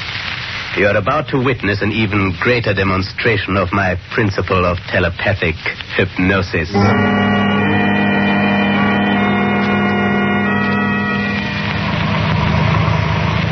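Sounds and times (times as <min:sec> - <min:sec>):
speech: 0:00.8 - 0:07.3
car engine idling, pulling over: 0:06.9 - 0:13.5.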